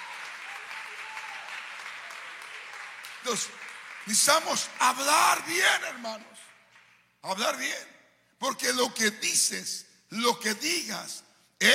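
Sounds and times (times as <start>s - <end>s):
audience applauding: 0.0s - 7.0s
speech: 3.2s - 6.4s, 7.2s - 11.7s.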